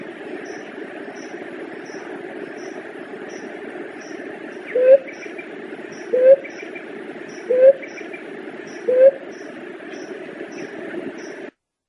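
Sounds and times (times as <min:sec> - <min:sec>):
Leptotila dove cooing: 0:04.6 - 0:06.8, 0:07.4 - 0:09.2.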